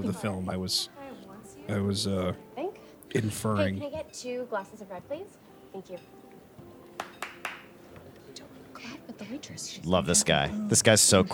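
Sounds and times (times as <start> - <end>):
speech: 0.0 - 2.5, 3.1 - 6.2, 9.2 - 11.3
low chatter: 0.0 - 7.0, 7.6 - 11.3
sharp crisp hand claps: 6.8 - 7.8.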